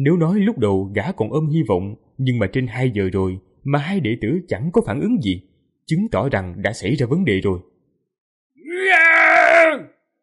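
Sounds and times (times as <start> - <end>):
speech: 0.0 - 7.7
enraged man's roar: 8.6 - 9.9.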